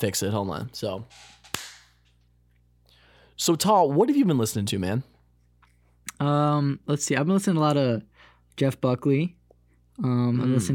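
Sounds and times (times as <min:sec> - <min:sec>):
speech: 0:00.0 - 0:01.4, 0:03.4 - 0:05.1, 0:06.2 - 0:09.4, 0:10.0 - 0:10.7
single hand clap: 0:01.5 - 0:01.9.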